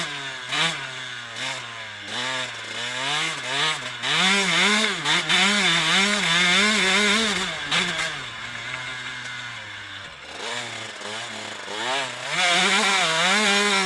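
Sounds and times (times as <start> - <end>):
motorcycle engine starting onboard: 0.0 - 13.8
motorcycle engine stopping: 6.2 - 12.0.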